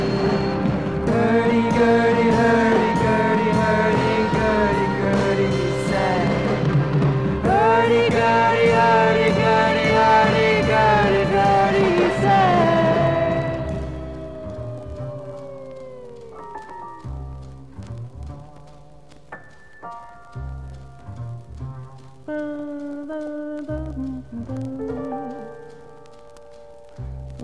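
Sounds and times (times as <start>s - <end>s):
hurdy-gurdy: 0.0s - 18.0s.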